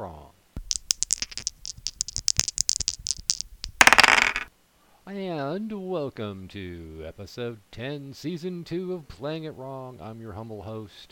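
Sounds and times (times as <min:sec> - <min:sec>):
dice clattering: 0:00.6 - 0:04.5
speech: 0:05.4 - 0:11.1.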